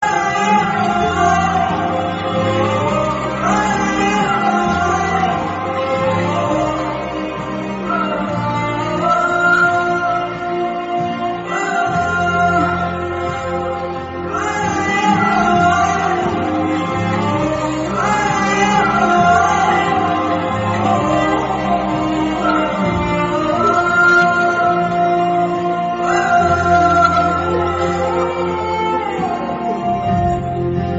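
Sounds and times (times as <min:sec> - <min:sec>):
sad background music: 0:00.0 - 0:30.9.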